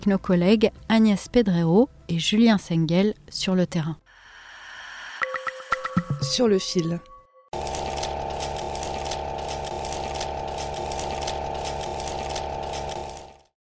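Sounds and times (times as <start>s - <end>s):
speech: 0.0s - 4.0s, 6.2s - 7.1s
high-tech cannabis vaporizer with metal cone whirring: 7.6s - 13.4s.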